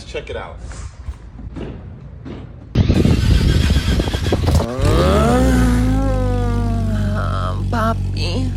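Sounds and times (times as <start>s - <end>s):
Porsche car noise: 2.2s - 8.5s.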